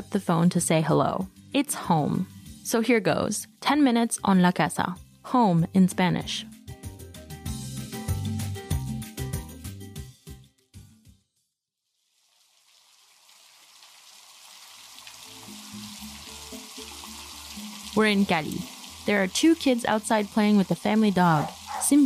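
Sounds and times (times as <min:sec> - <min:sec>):
speech: 0:00.1 - 0:06.5, 0:18.0 - 0:22.0
pouring rain: 0:12.1 - 0:22.0.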